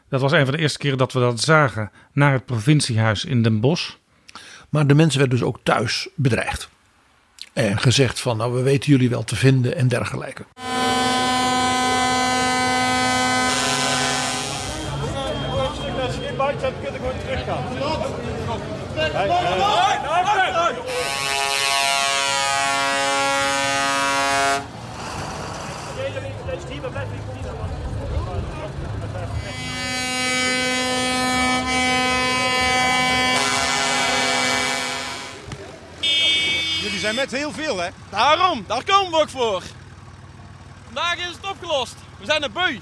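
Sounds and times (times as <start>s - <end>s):
speech: 0.1s - 6.8s, 7.6s - 10.7s, 37.2s - 39.8s, 41.0s - 42.8s
tractor horns blaring at a farmers' protest: 10.6s - 17.8s, 18.8s - 24.9s, 28.7s - 42.8s
tractor engine noise: 10.6s - 42.8s
crowd murmuring: 13.5s - 21.5s, 25.6s - 37.6s.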